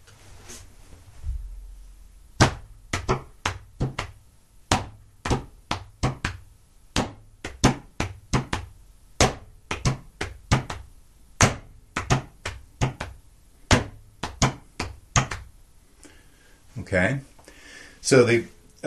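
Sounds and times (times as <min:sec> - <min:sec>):
hand slapping leg: 0:02.4 - 0:15.5
speech: 0:16.8 - 0:17.3, 0:18.0 - 0:18.8.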